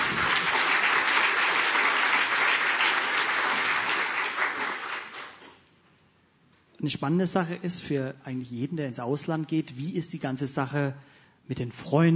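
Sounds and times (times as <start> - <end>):
audience applause: 0.0 - 5.5
speech: 6.8 - 12.1.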